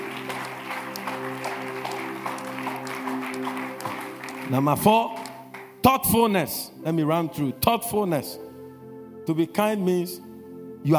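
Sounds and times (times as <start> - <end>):
audience clapping: 0.0 - 5.8
speech: 4.5 - 5.2, 5.8 - 8.4, 9.3 - 10.9.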